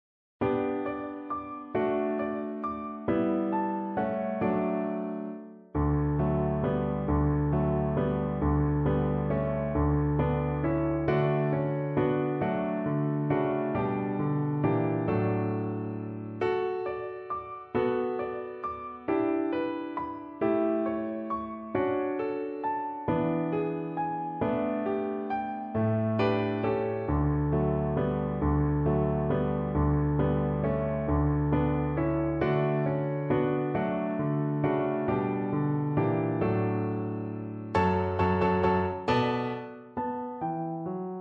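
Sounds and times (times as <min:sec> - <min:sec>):
solo piano: 0:00.4 - 0:41.1.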